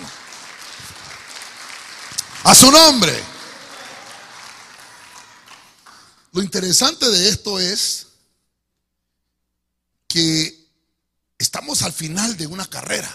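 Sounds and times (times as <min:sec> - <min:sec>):
audience clapping: 0:00.0 - 0:06.3
speech: 0:02.4 - 0:03.3, 0:06.4 - 0:08.1, 0:10.2 - 0:10.6, 0:11.4 - 0:13.1.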